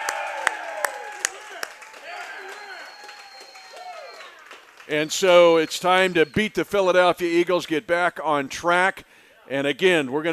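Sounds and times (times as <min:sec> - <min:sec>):
live crowd cheering for Andy Reid: 0:00.0 - 0:07.0
speech: 0:04.9 - 0:10.3.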